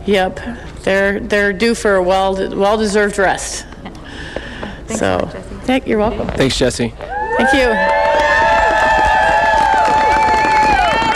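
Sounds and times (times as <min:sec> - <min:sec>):
speech: 0:00.0 - 0:08.0
crowd cheering for Jesse Royer at the Iditarod finish line in Nome: 0:07.0 - 0:11.1.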